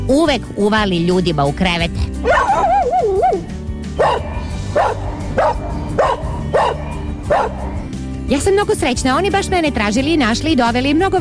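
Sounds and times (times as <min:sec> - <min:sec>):
speech: 0:00.1 - 0:02.7, 0:08.3 - 0:11.1
dog barking: 0:02.2 - 0:02.9, 0:04.0 - 0:07.9
dog whining: 0:02.2 - 0:07.9.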